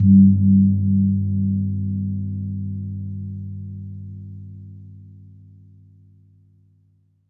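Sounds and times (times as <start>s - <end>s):
gong kempur: 0.0s - 6.2s.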